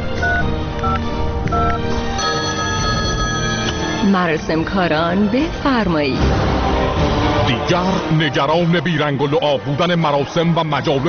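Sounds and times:
mobile phone keypad tones dialing a number: 0:00.2 - 0:04.1
speech: 0:04.1 - 0:11.0.

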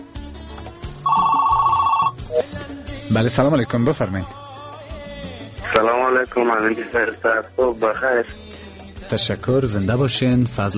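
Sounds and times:
telephone ringing with an incoming call to a radio show: 0:01.0 - 0:02.4
brief higher tone: 0:01.1 - 0:02.4
speech: 0:03.1 - 0:04.4, 0:05.7 - 0:08.4, 0:09.1 - 0:10.7.

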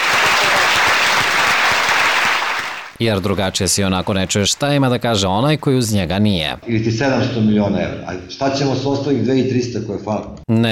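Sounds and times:
audience applauding loudly: 0:00.0 - 0:03.0
speech: 0:03.0 - 0:10.7.

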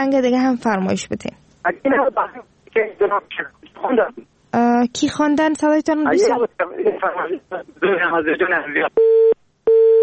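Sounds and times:
speech: 0:00.0 - 0:09.4
telephone busy signal after a phone call to the radio show dropped: 0:09.0 - 0:10.0.

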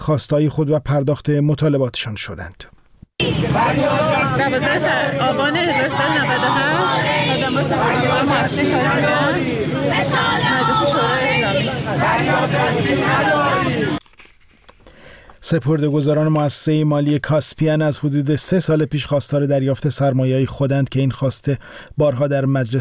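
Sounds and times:
speech: 0:00.0 - 0:11.2, 0:11.9 - 0:14.0, 0:15.4 - 0:22.8
large protest crowd chanting slogans: 0:03.2 - 0:14.0.

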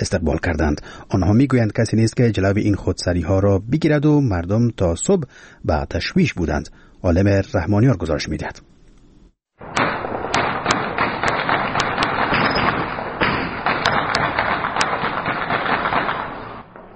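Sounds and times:
speech: 0:00.0 - 0:08.7
light and heavy weapons gunfire at night in Sheberghan, Afghanistan: 0:09.6 - 0:16.9.

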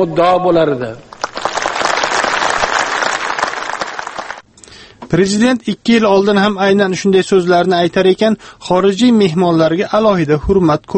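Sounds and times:
speech: 0:00.0 - 0:01.1, 0:05.1 - 0:10.9
audience applause for foreign guests at an official ceremony: 0:01.1 - 0:04.4.

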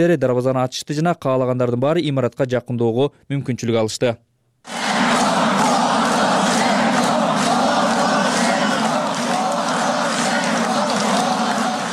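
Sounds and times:
speech: 0:00.0 - 0:04.8
crowd of several thousand shouting at a rally for Petro Poroshenko: 0:04.7 - 0:11.9.

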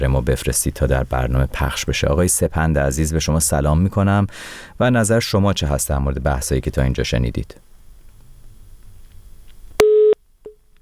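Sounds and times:
speech: 0:00.0 - 0:07.6
disconnected phone line tone: 0:09.8 - 0:10.6.

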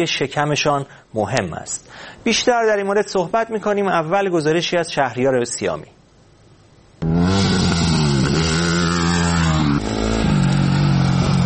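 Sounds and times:
speech: 0:00.0 - 0:06.0
motorcycle engine revving: 0:07.0 - 0:11.4.

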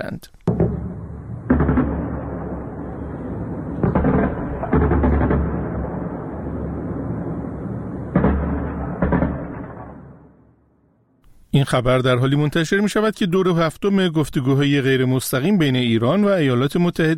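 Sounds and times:
speech: 0:00.0 - 0:00.4, 0:11.6 - 0:17.1
anti-aircraft gunfire: 0:00.5 - 0:10.6.

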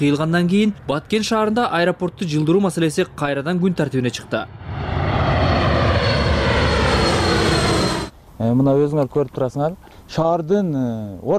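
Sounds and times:
speech: 0:00.0 - 0:05.1, 0:08.4 - 0:11.3
airplane flying low over Batken city: 0:04.1 - 0:08.2.

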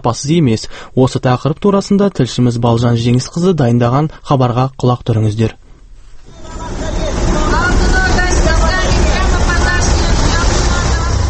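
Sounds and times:
speech: 0:00.0 - 0:05.6
Chinese buses at the Tole Bi and Furmanov intersection bus stop: 0:06.3 - 0:11.2
murmur of voices: 0:06.3 - 0:11.2.

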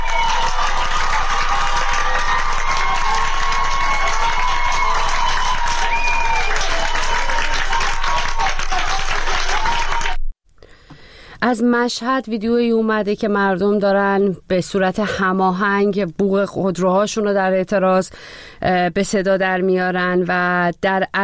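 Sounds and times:
street crowd clapping and cheering: 0:00.0 - 0:10.3
speech: 0:11.5 - 0:21.2.

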